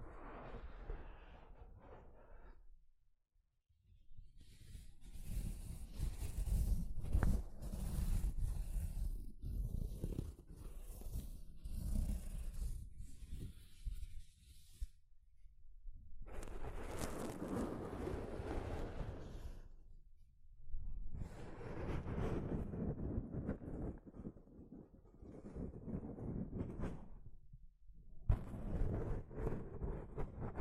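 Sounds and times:
soft fabric brushing against a microphone: 4.4s - 15.0s, 16.3s - 19.6s, 21.1s - 27.3s, 28.3s - 30.6s.

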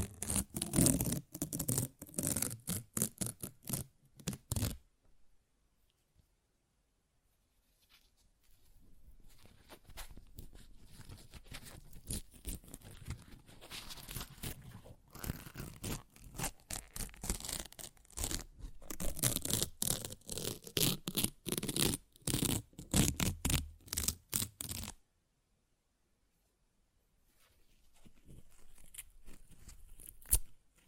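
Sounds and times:
paper ripped and torn: 0.0s - 4.8s, 11.6s - 25.0s
softer scratchy rustling: 0.0s - 4.8s, 7.5s - 25.0s, 27.3s - 30.8s.

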